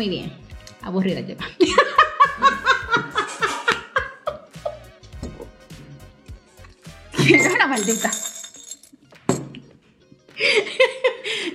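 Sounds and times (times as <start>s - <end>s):
speech: 0.0s - 3.2s, 7.3s - 8.3s
laughter: 1.4s - 5.0s, 10.4s - 11.5s
improvised bell being rung: 7.3s - 8.8s.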